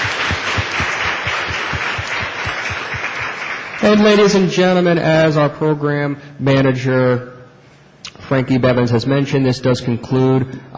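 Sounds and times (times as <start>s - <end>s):
faint rhythmic thump: 0.0s - 3.4s
audience applause: 0.0s - 4.4s
speech: 3.8s - 7.3s, 8.3s - 10.7s.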